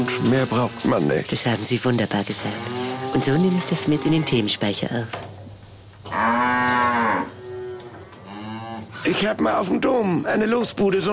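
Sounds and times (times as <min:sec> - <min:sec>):
speech: 0:00.1 - 0:05.4, 0:09.2 - 0:11.1
cow mooing: 0:02.4 - 0:04.6, 0:06.0 - 0:09.1.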